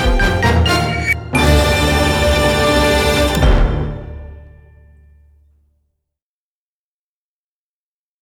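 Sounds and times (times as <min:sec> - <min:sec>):
battle music: 0:00.0 - 0:05.0.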